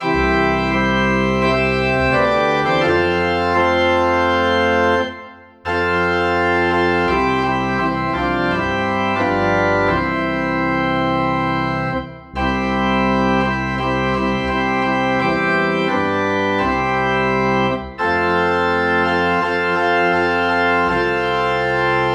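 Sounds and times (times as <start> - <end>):
organ in C: 0.0 - 22.1.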